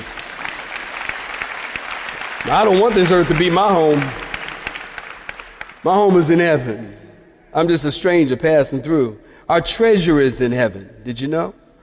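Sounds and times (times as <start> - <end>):
audience clapping hands: 0.0 - 6.2
speech: 2.4 - 4.2, 5.8 - 11.6.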